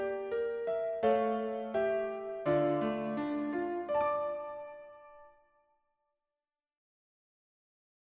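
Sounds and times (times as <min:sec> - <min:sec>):
piano: 0:00.0 - 0:05.6.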